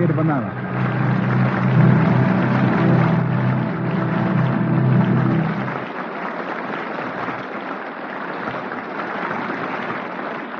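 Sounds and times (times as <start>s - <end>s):
theater audience applause: 0.0s - 10.5s.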